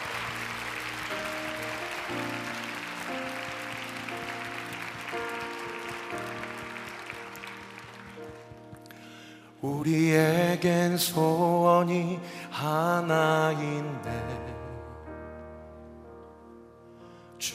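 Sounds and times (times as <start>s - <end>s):
audience applause: 0.0s - 9.1s
speech: 9.7s - 14.5s.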